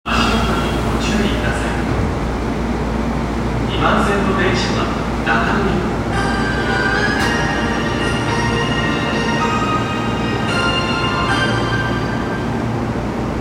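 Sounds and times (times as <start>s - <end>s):
train: 0.0s - 13.3s.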